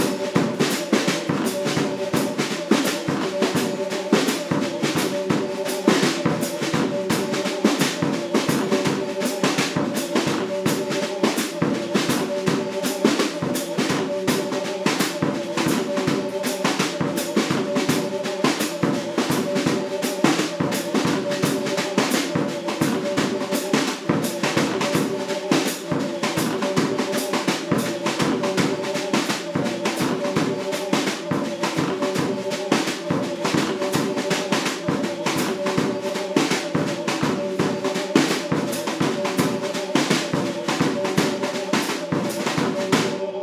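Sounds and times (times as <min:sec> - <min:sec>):
drums: 0:00.0 - 0:43.3.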